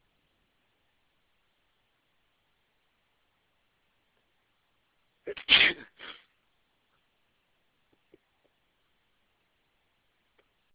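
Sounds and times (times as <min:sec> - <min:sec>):
man sneezing: 0:05.3 - 0:06.3.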